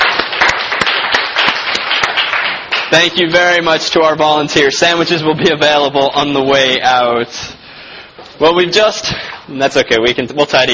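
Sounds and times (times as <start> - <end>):
audience applause: 0.0 - 3.2
speech: 2.9 - 7.6, 8.4 - 10.7.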